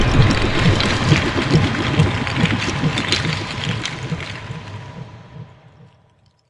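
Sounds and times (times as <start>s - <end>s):
bone armor: 0.2s - 5.5s.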